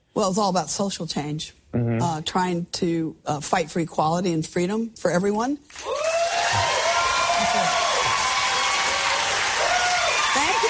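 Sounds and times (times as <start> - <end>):
speech: 0.2 - 6.7
audience applauding: 5.8 - 10.6.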